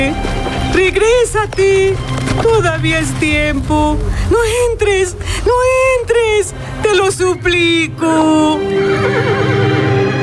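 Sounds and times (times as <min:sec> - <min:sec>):
dense low rumble: 0:00.0 - 0:09.5
speech: 0:00.8 - 0:09.6
horse neighing: 0:08.6 - 0:10.1.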